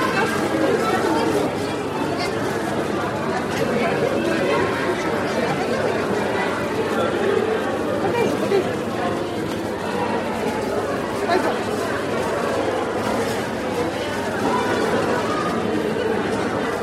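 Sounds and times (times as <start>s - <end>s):
fast food restaurant ambience: 0.0s - 16.8s.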